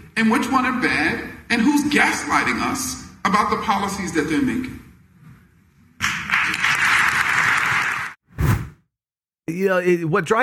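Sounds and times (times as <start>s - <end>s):
speech: 0.2s - 4.8s, 9.5s - 10.4s
audience clapping: 6.0s - 8.2s.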